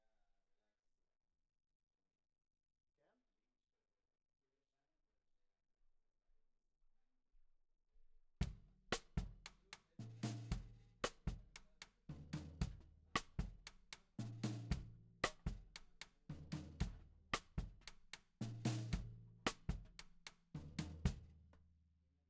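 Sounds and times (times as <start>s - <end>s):
snare drum: 8.4s - 21.3s.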